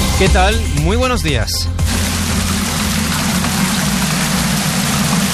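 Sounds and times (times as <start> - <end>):
speech: 0.2 - 2.1
hail falling in Castellfort: 1.9 - 5.3.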